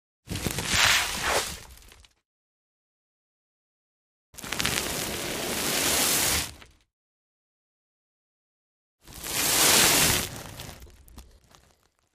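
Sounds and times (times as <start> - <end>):
sand sack dragging: 0.7 - 1.6, 4.4 - 6.5, 9.1 - 10.8.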